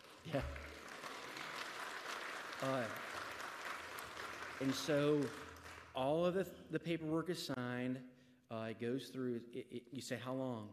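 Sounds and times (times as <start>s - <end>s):
audience applause: 0.0s - 6.0s
speech: 0.2s - 0.7s, 2.6s - 3.1s, 4.6s - 5.4s, 6.0s - 10.7s.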